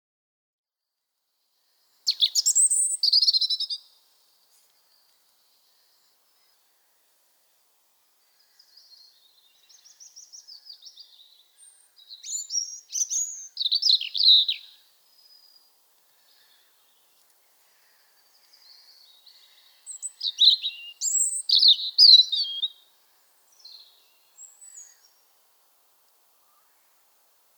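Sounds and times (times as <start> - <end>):
European robin twittering song: 2.0 - 3.9, 8.3 - 25.4.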